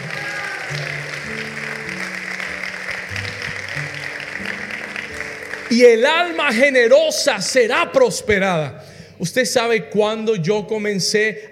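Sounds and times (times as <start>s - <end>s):
applause: 0.0s - 6.8s
speech: 5.7s - 11.5s.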